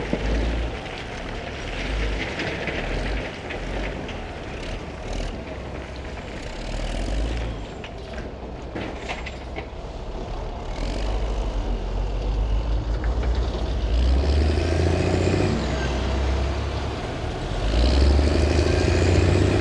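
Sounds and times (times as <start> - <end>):
bulldozer: 0.0 - 19.6.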